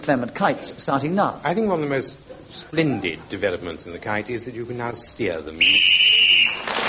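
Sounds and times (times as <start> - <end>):
speech: 0.0 - 6.0
referee's whistle ending the round: 5.6 - 6.7.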